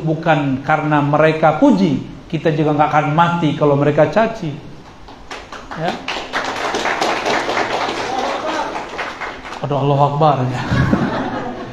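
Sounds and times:
speech: 0:00.0 - 0:04.7, 0:05.8 - 0:06.1, 0:09.6 - 0:10.8
audience clapping: 0:04.8 - 0:09.9
laughter: 0:10.4 - 0:11.7.

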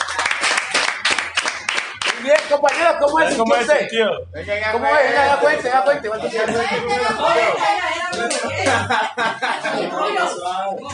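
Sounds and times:
group applauding: 0:00.0 - 0:03.2
speech: 0:02.2 - 0:10.9
laughter: 0:04.5 - 0:10.9.

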